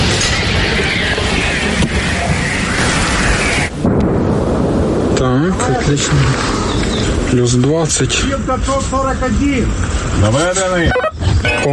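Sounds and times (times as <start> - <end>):
heavy artillery shot firing: 0.0 - 7.2
speech: 5.4 - 11.7.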